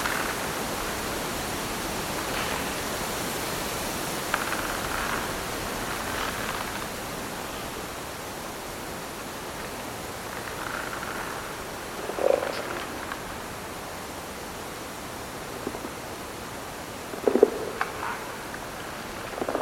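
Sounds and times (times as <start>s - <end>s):
trees creaking in the wind: 0.0s - 19.6s.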